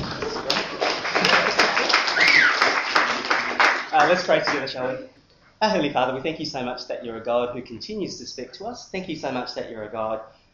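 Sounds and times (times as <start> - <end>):
crowd clapping: 0.0 - 4.8
speech: 4.1 - 10.4.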